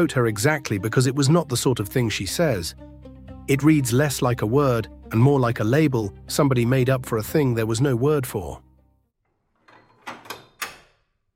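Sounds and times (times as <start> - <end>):
speech: 0.0 - 8.6
door bolt sliding: 9.5 - 11.2.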